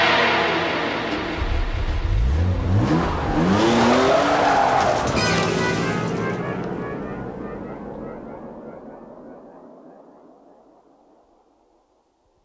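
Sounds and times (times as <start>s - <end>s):
car engine revving and driving off: 0.1s - 9.6s.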